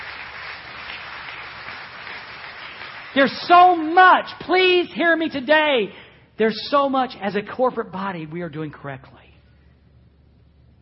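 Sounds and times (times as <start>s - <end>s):
audience clapping: 0.0s - 4.0s
speech: 3.1s - 9.2s.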